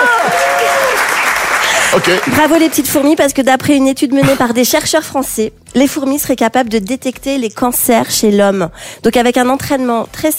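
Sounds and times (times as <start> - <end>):
applause: 0.0 - 3.0
speech: 1.9 - 10.3.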